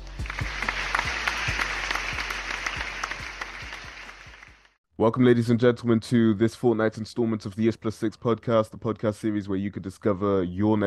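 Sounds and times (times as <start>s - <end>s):
applause welcoming a guest: 0.0s - 4.7s
speech: 5.0s - 10.8s.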